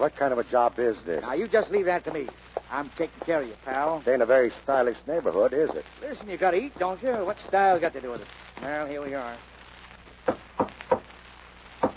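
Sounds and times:
speech: 0.0 - 9.5
knocking on a door: 10.3 - 11.0.

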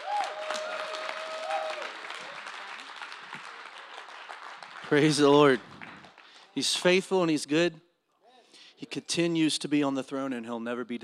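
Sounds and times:
audience applause: 0.0 - 6.6
speech: 4.9 - 5.7, 6.6 - 7.8, 8.8 - 11.0.

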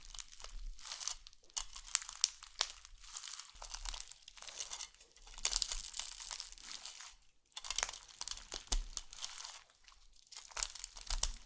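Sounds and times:
slime being squished, crackling and popping: 0.0 - 11.4.

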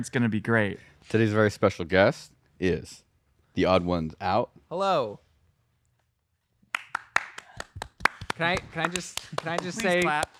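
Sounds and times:
speech: 0.0 - 3.0, 3.6 - 5.2, 8.4 - 10.3
small audience clapping: 6.7 - 10.3.

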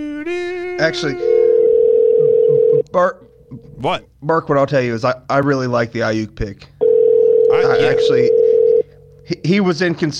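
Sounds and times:
speech: 0.0 - 1.4, 2.2 - 6.7, 7.6 - 8.4, 9.3 - 10.1
telephone dial tone: 1.5 - 2.8, 6.8 - 8.8.

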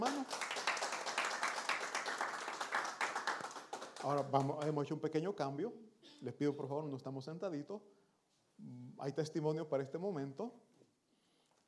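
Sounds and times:
audience applause: 0.0 - 4.7
speech: 4.0 - 8.0, 8.6 - 10.7.

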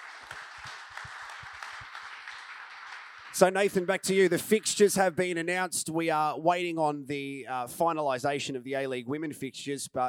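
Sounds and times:
audience applause at a football club members' forum: 0.0 - 4.8
speech: 3.4 - 10.0.

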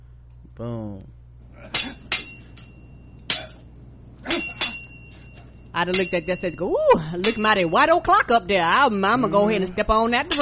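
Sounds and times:
low steady hum: 0.0 - 10.3
speech: 0.6 - 1.2, 5.8 - 10.3
metallic sword ratcheting sound effect: 1.7 - 6.3.

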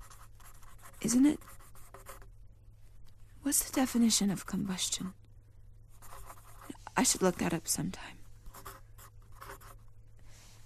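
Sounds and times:
pen scratching in a journal: 0.0 - 2.3, 6.0 - 7.2, 8.5 - 9.8
speech: 1.0 - 1.5, 3.5 - 5.2, 7.0 - 8.2.

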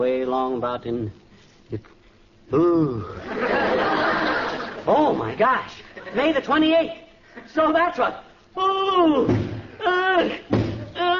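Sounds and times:
speech: 0.0 - 4.1, 4.8 - 10.5
laughter: 3.0 - 6.4
head banging against a wall: 10.5 - 10.9.

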